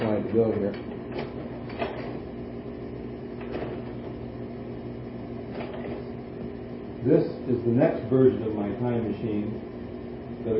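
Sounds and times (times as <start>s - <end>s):
mechanical clunks of a stuck slide projector: 0.0s - 2.4s, 3.3s - 4.2s, 5.4s - 6.2s
stuck slide projector humming: 0.0s - 10.5s
speech: 0.4s - 1.3s, 7.0s - 9.7s.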